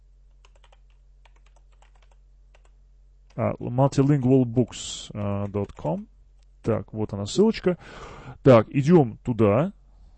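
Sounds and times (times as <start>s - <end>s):
low steady hum: 0.0s - 10.1s
typing on a computer keyboard: 0.3s - 4.4s, 5.2s - 6.1s
speech: 3.4s - 9.8s.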